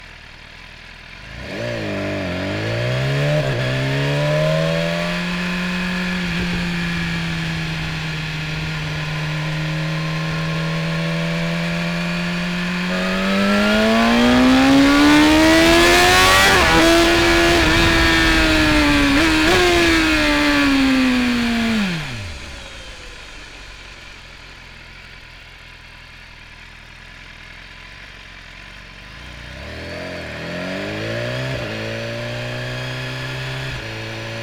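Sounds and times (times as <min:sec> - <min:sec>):
2015 BMW S1000RR 999cc four-stroke motorcycle engine accelerating onboard: 0:00.0 - 0:34.4
2015 BMW S1000RR motorcycle gearshifts: 0:05.0 - 0:22.8.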